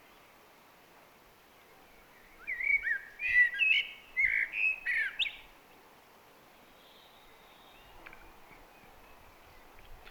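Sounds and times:
Eurasian blackbird singing: 0:02.4 - 0:05.4.

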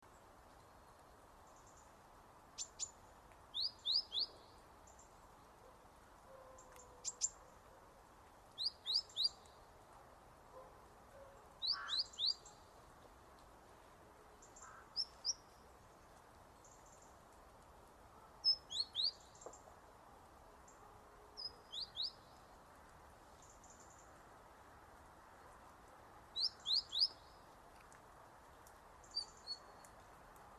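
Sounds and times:
faint steady hiss: 0:00.0 - 0:30.5
Great tit calls with rising chirps and ticks: 0:02.6 - 0:07.8, 0:08.5 - 0:09.7, 0:11.6 - 0:13.5, 0:14.4 - 0:19.7, 0:21.4 - 0:24.2, 0:26.3 - 0:30.5.

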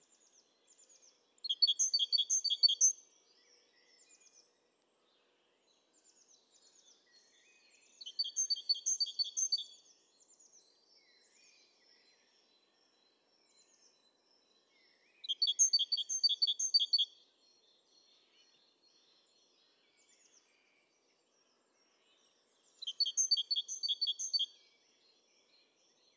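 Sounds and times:
great tit calling with high chirping notes: 0:00.7 - 0:03.0, 0:08.0 - 0:09.8, 0:15.2 - 0:17.2, 0:22.6 - 0:24.5.

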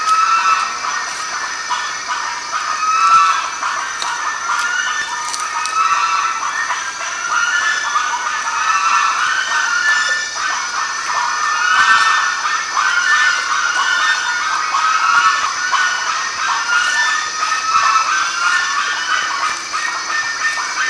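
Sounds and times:
large group of birds squawking and chattering: 0:00.0 - 0:20.8.

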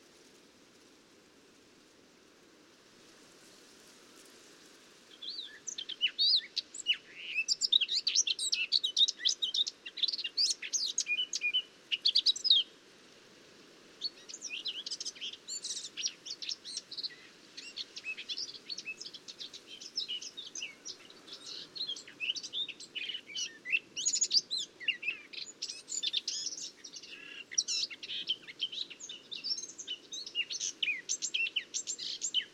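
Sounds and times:
Eurasian blackcap warbling song: 0:05.2 - 0:12.7, 0:14.0 - 0:32.5.

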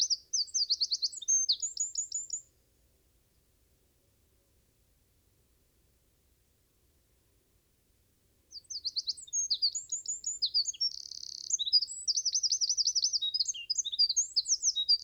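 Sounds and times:
Eurasian wren song of fast high tumbling notes and a ringing trill: 0:00.0 - 0:02.4, 0:08.6 - 0:15.0.

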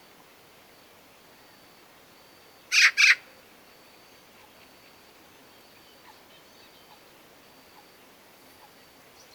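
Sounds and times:
Eurasian magpie Pica pica calling with harsh noisy rasps: 0:02.7 - 0:03.2.

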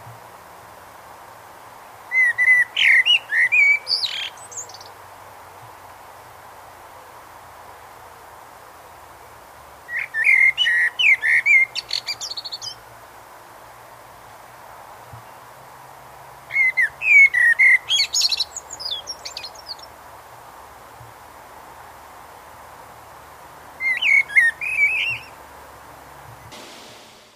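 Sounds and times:
common blackbird singing: 0:02.1 - 0:04.9, 0:09.9 - 0:12.8, 0:16.5 - 0:19.9, 0:23.8 - 0:25.4.

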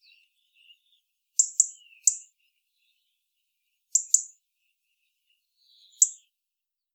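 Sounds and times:
European robin ticking: 0:01.4 - 0:02.3, 0:04.0 - 0:04.4, 0:06.0 - 0:06.2.

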